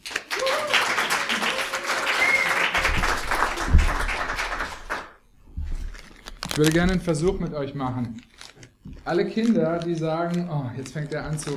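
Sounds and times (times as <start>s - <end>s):
audience clapping for the children: 0.0s - 5.2s
voices and cheers: 0.3s - 4.1s
speech: 6.6s - 8.3s, 9.0s - 11.5s.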